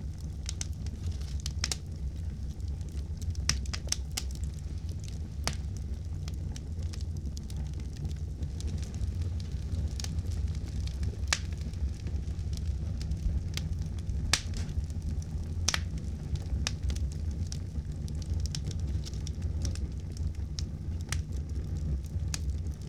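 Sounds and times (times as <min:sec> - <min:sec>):
campfire: 0:00.0 - 0:22.8.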